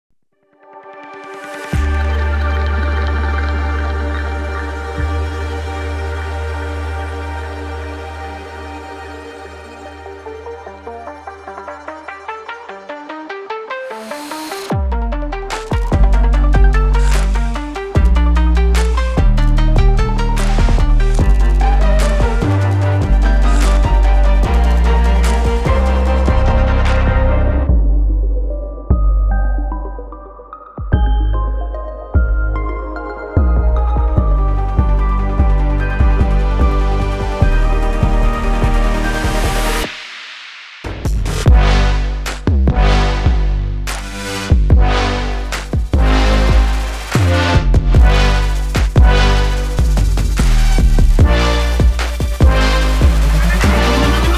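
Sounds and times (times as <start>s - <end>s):
trailer music: 0.4s - 54.3s.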